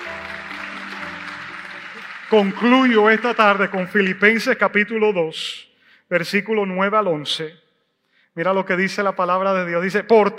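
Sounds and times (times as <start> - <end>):
audience applause: 0.0 - 4.5
speech: 2.3 - 7.6, 8.4 - 10.3.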